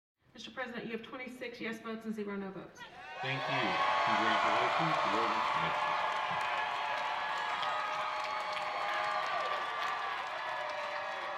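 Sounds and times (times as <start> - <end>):
speech: 0.4 - 6.0
crowd applauding: 3.0 - 11.3.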